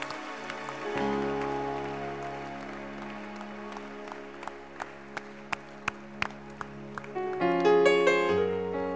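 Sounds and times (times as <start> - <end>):
audience clapping in unison: 0.0 - 8.3.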